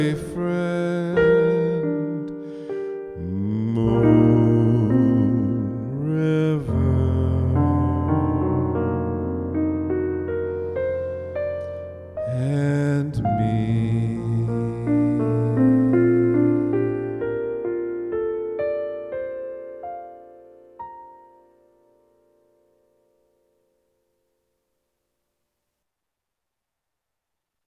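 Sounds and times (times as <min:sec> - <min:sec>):
person singing: 0:00.0 - 0:09.6, 0:10.2 - 0:17.8
piano: 0:00.0 - 0:25.1.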